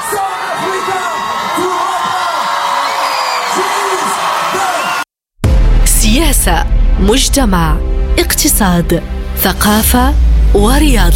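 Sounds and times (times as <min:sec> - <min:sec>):
large concert crowd roaring and cheering: 0:00.0 - 0:05.1
whoops and shouts: 0:00.0 - 0:05.1
concert crowd applause: 0:00.6 - 0:05.0
speech: 0:06.2 - 0:11.1.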